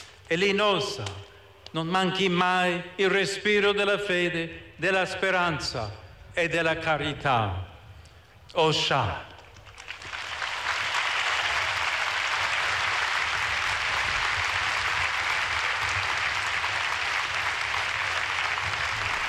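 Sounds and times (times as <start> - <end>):
speech: 0.3 - 7.7, 8.5 - 9.3
large crowd applauding in Arena stadium of Lampedusa: 9.4 - 19.2.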